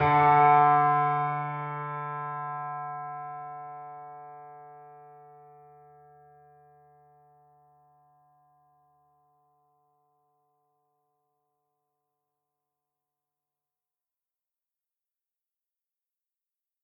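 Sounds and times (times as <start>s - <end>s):
piano theme: 0.0s - 6.4s.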